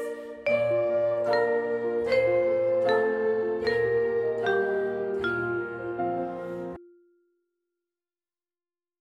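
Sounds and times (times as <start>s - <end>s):
alto voices of an SSA choir singing: 0.0s - 6.8s.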